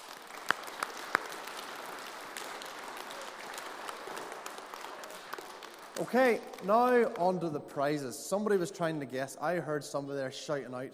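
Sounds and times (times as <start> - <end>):
audience applause: 0.0 - 7.5
speech: 6.0 - 10.9.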